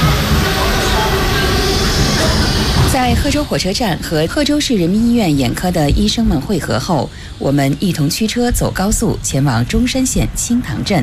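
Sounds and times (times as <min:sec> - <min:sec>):
train running, onboard ambience: 0:00.0 - 0:11.0
speech: 0:03.0 - 0:11.0.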